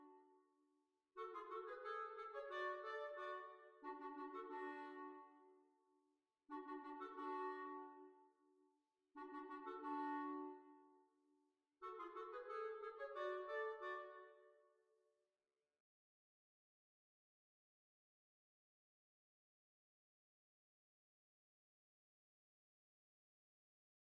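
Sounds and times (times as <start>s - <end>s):
hornpipe tune: 1.2s - 5.3s, 6.5s - 7.9s, 9.2s - 10.7s, 11.9s - 14.3s.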